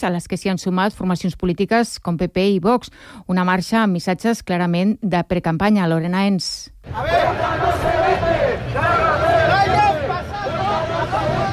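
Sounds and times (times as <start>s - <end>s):
speech: 0.0s - 8.9s
large protest crowd chanting: 6.8s - 11.5s.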